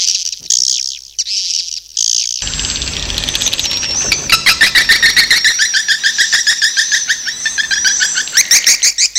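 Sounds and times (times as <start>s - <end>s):
many swiftlets chirping: 2.4s - 8.9s.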